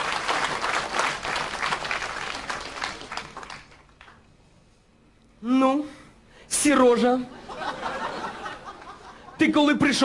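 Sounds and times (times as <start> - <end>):
audience applause: 0.0 - 4.2
speech: 6.6 - 7.4, 9.4 - 10.0
laughter: 7.4 - 9.4.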